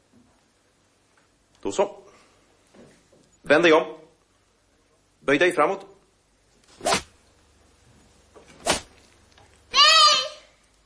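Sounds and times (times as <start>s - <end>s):
speech: 1.6s - 2.0s, 3.5s - 4.0s, 5.2s - 5.9s
girl screaming: 9.7s - 10.5s.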